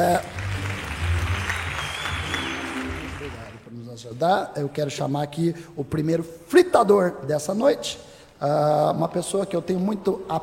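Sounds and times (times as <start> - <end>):
speech: 0.0 - 0.4, 3.3 - 10.4
audience applause: 0.0 - 3.7.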